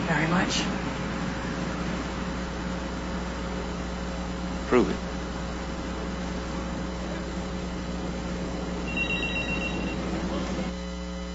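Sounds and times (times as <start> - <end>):
low hum and hiss: 0.0 - 11.3
speech: 0.1 - 0.9, 4.7 - 5.1
bell ringing: 8.8 - 10.4.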